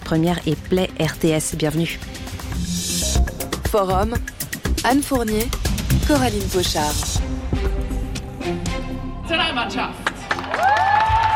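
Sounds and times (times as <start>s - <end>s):
speech: 0.1s - 2.7s, 3.7s - 7.5s, 8.5s - 10.0s
crowd cheering welcoming the Swiss national football team in Zurich: 9.9s - 11.3s.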